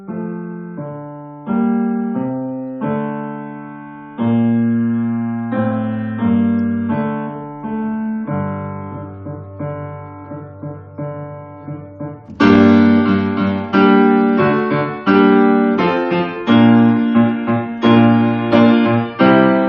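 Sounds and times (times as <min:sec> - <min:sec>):
piano duet at exam speed: 0:00.0 - 0:19.6.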